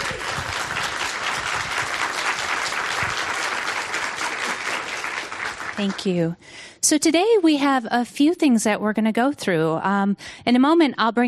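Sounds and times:
audience applause: 0.0 - 6.2
speech: 5.8 - 11.2.

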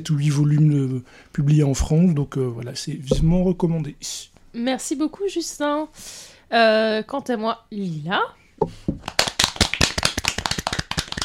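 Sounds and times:
speech: 0.0 - 9.2
low tone: 3.1 - 3.7
audience clapping: 9.0 - 11.2.

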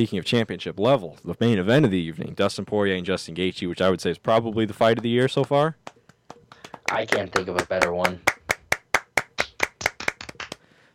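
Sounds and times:
speech: 0.0 - 5.9, 6.9 - 8.3
hand clapping: 4.5 - 10.7.

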